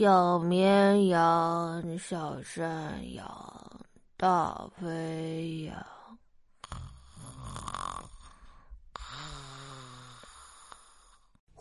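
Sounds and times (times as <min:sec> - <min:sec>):
speech: 0:00.0 - 0:05.9
snoring: 0:06.6 - 0:11.4.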